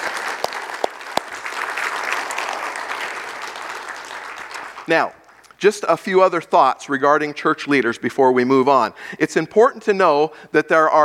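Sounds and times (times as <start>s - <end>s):
audience applause: 0.0s - 5.5s
speech: 4.9s - 11.0s.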